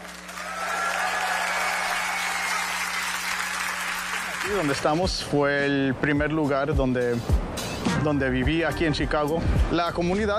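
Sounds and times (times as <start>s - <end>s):
audience applause: 0.0s - 5.1s
speech: 4.5s - 10.3s.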